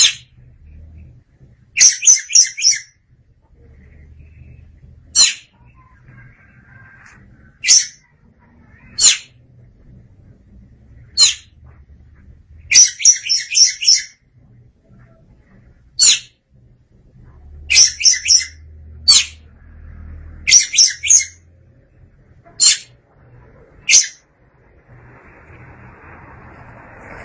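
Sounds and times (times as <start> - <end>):
Oriental magpie-robin singing: 0.0 - 0.3, 1.8 - 3.0, 4.4 - 6.2, 7.6 - 9.4, 11.1 - 11.5, 12.7 - 14.2, 16.0 - 16.3, 17.7 - 19.5, 20.4 - 21.5, 22.6 - 23.0, 23.8 - 24.2.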